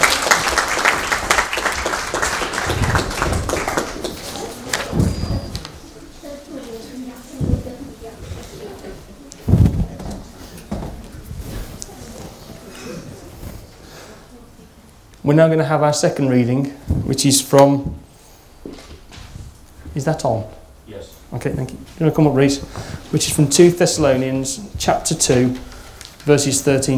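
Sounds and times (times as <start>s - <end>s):
audience applause: 0.0s - 5.6s
speech: 15.3s - 18.0s, 20.0s - 20.6s, 21.4s - 26.9s.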